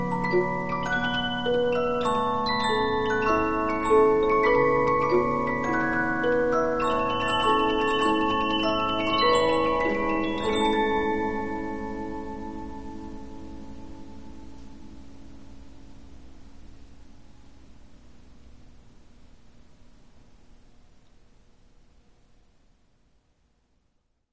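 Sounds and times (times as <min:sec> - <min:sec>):
Polyphon 15-inch disc music box playing: 0:00.0 - 0:13.2.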